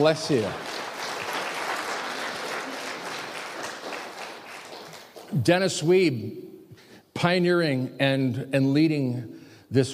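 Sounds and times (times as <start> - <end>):
speech: 0.0 - 0.6, 5.3 - 6.5, 7.2 - 9.9
audience applause: 0.0 - 5.4.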